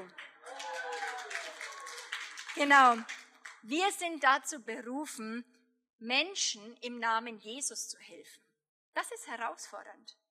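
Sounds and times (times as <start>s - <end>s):
audience applause: 0.0s - 3.6s
speech: 2.6s - 8.4s, 9.0s - 10.2s.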